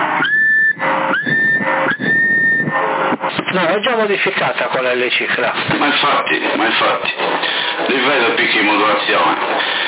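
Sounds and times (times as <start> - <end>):
CB radio carrier thin steady whistling tone: 0.2 - 2.8
loud band-limited CB radio hiss: 3.3 - 9.8
speech: 3.8 - 9.8.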